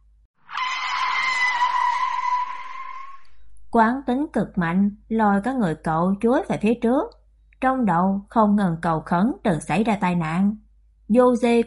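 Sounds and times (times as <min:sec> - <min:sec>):
car tires screeching under hard braking: 0:00.4 - 0:03.5
speech: 0:03.7 - 0:11.6.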